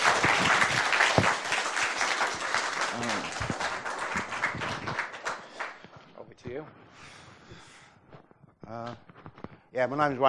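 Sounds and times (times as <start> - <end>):
round of applause: 0.0 - 5.9
speech: 9.8 - 10.2.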